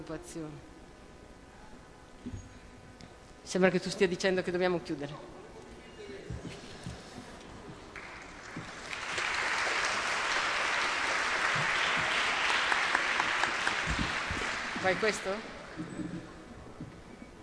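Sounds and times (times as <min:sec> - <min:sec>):
speech: 0:00.0 - 0:00.7, 0:03.5 - 0:05.4, 0:14.8 - 0:16.1
audience applause: 0:08.0 - 0:15.9.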